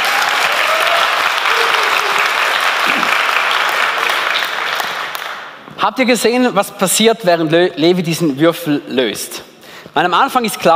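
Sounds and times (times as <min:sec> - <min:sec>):
audience applause: 0:00.0 - 0:05.6
speech: 0:05.8 - 0:10.7.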